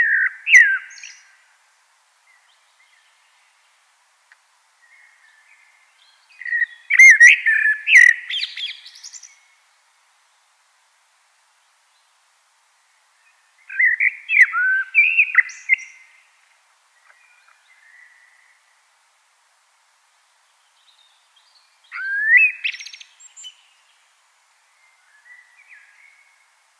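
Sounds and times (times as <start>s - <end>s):
Common blackbird singing: 0.0s - 1.4s, 4.8s - 9.5s, 13.3s - 16.2s, 20.8s - 23.9s, 24.8s - 26.4s.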